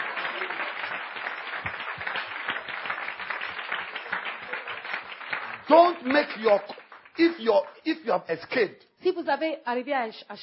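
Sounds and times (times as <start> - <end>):
church congregation clapping during a sermon: 0.0 - 8.2
speech: 5.7 - 10.4.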